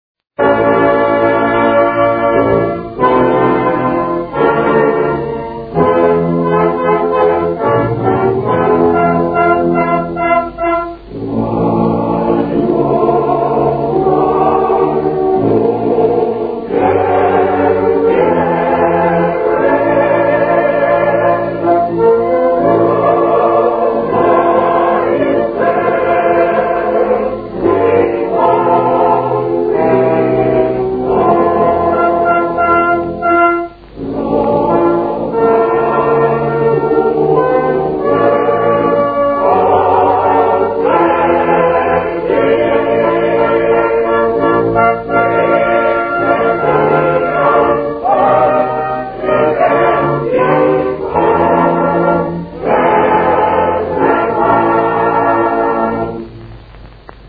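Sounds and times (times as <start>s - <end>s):
choir singing military music in Italy: 0.4s - 56.4s.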